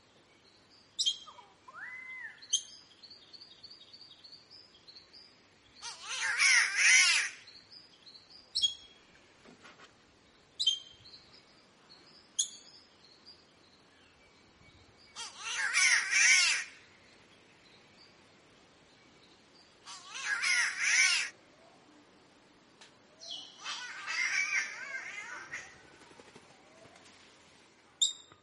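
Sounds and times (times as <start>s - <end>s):
green catbird wailing: 5.8s - 7.4s, 15.2s - 16.7s, 19.9s - 21.3s, 23.3s - 25.8s.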